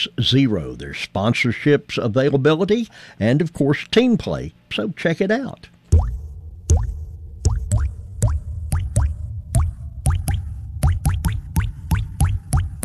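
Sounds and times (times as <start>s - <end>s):
speech: 0.0s - 6.9s
low constant background: 0.0s - 12.8s
water dripping from a plumbing leak: 5.9s - 12.8s.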